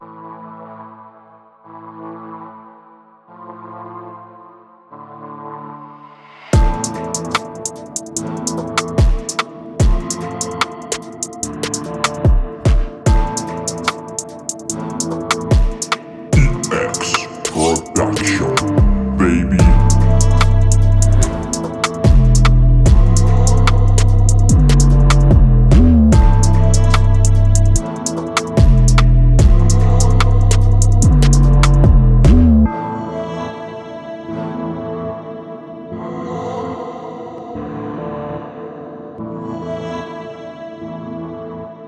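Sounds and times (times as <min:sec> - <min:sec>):
music beat: 0:06.6 - 0:32.7.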